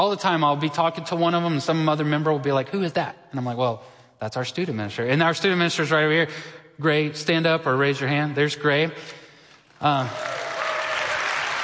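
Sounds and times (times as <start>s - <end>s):
speech: 0.0s - 9.2s, 9.8s - 10.5s
congregation applauding for the church's student minister: 9.9s - 11.6s.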